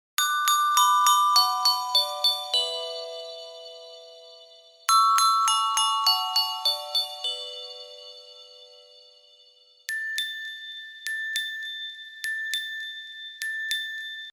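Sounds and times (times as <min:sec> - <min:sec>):
glockenspiel: 0:00.2 - 0:14.3.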